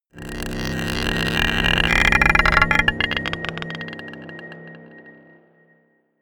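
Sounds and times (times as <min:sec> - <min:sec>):
scraping a marble pot: 0:00.2 - 0:04.8
dark drones: 0:00.2 - 0:05.8.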